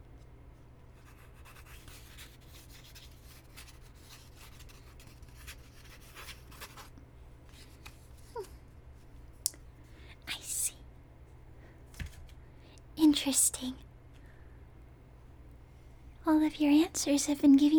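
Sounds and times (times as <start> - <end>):
scratchy strokes of handwriting: 1.0 - 6.9
speech: 13.2 - 13.9, 16.4 - 17.7.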